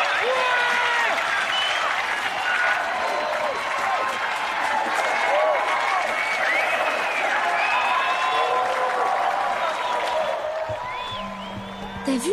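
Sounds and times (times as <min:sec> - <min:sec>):
audience ovation with applause and cheering: 0:00.0 - 0:12.3
shouts and whistle-like cries: 0:00.0 - 0:12.3.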